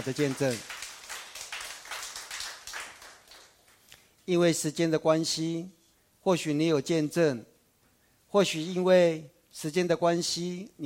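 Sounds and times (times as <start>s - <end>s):
speech: 0.0s - 0.8s, 4.3s - 7.5s, 8.3s - 10.8s
audience applause: 0.0s - 3.7s.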